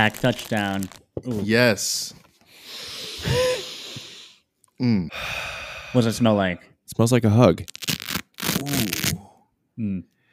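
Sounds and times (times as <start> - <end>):
new leather golf glove being handled, crinkling: 0.0 - 1.0, 7.7 - 9.2
speech: 0.0 - 3.5, 4.8 - 7.8, 8.6 - 9.1, 9.8 - 10.1
person murmuring: 4.8 - 5.2, 8.6 - 9.2.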